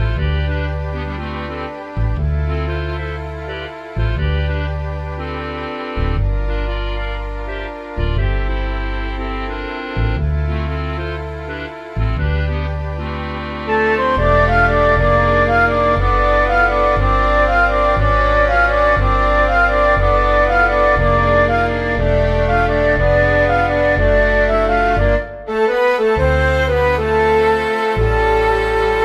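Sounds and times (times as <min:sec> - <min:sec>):
MIDI music mix: 0:00.0 - 0:29.0.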